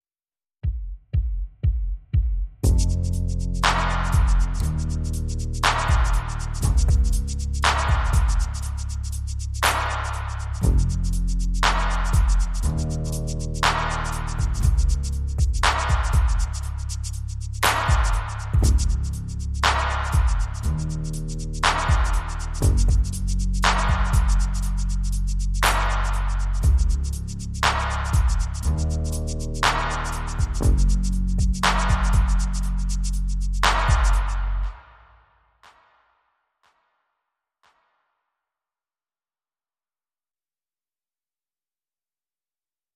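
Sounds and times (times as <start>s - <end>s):
drums: 0.6s - 34.9s
bass: 2.6s - 35.0s.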